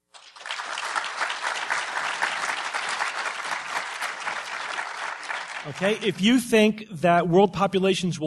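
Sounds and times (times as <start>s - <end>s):
audience applause: 0.0s - 6.4s
speech: 5.6s - 8.2s.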